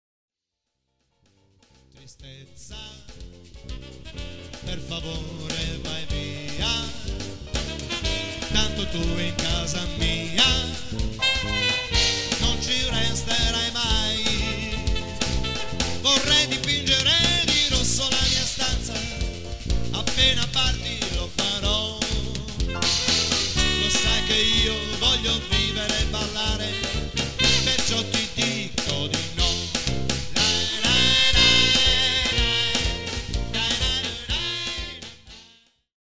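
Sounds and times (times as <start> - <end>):
samba music: 1.6 - 35.8.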